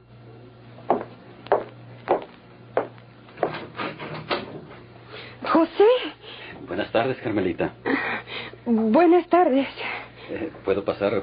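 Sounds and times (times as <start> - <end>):
faint steady hum: 0.0 - 11.2
knocking on a wooden door: 0.9 - 3.6
speech: 5.6 - 8.1, 8.7 - 11.2.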